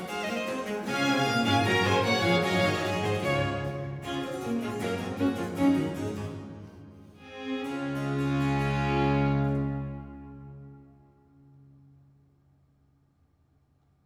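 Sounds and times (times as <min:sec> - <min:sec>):
concerto grosso in D major: 0:00.0 - 0:10.9.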